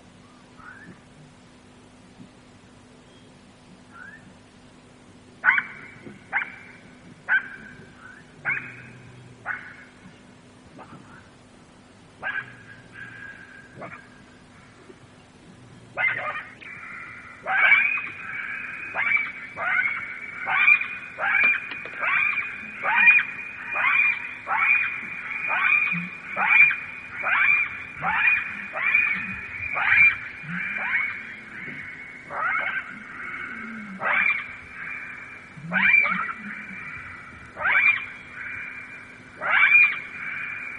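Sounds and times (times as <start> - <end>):
faint low hum: 0.0 - 40.7
jackals yelping: 5.4 - 11.3, 12.2 - 14.9, 15.9 - 40.7.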